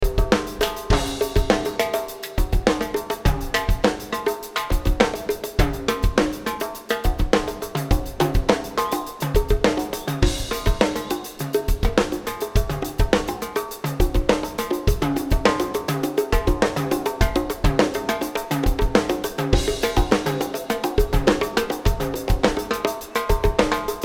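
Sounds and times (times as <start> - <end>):
drums: 0.0 - 24.0.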